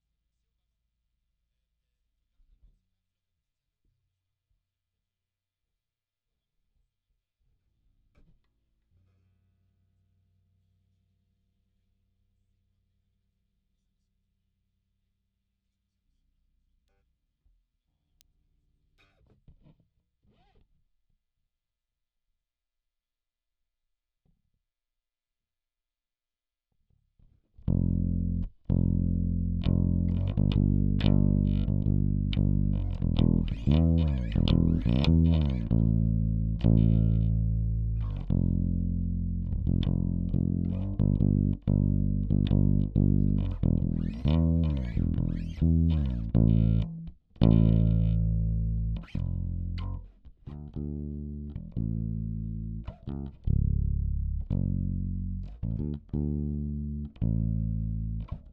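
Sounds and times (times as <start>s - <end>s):
bass guitar recorded by direct input: 27.6s - 58.5s.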